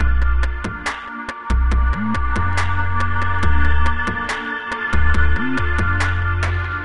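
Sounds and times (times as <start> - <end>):
music loop: 0.0 - 6.8.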